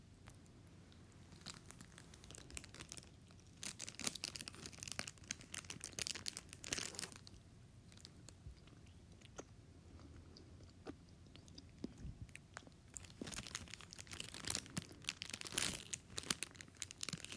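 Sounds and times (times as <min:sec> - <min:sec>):
crunching and chewing: 0:00.1 - 0:17.3
Hostess snack wrapper crinkling: 0:01.3 - 0:07.4, 0:12.9 - 0:17.3.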